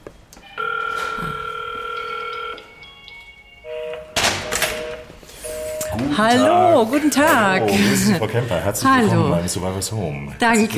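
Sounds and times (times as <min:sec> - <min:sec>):
electronic doorbell chiming: 0:00.4 - 0:06.5
speech: 0:06.0 - 0:10.7.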